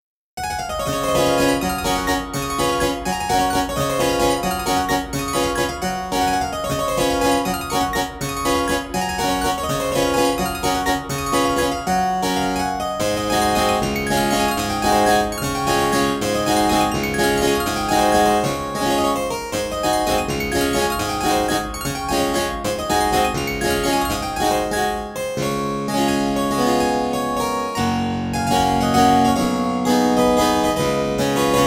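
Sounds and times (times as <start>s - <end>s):
baroque-style waltz: 0.5s - 31.6s.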